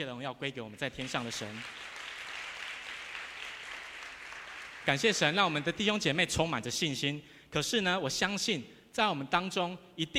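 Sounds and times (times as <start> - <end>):
speech: 0.0 - 2.0, 4.8 - 10.1
audience clapping: 0.8 - 6.0.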